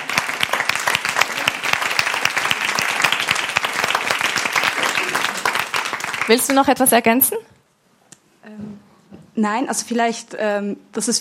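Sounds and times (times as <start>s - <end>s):
audience applause: 0.0s - 6.9s
speech: 6.3s - 7.6s, 9.4s - 11.1s.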